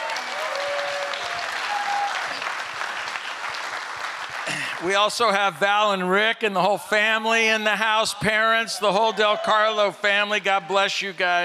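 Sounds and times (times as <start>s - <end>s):
faint whistles and cheers: 0.0s - 2.5s
audience applause: 0.0s - 5.3s
speech: 4.8s - 11.4s.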